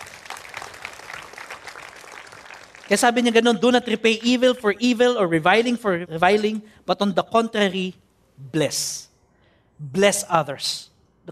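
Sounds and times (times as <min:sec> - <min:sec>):
church congregation clapping: 0:00.0 - 0:03.7
speech: 0:02.9 - 0:09.1, 0:09.8 - 0:11.3.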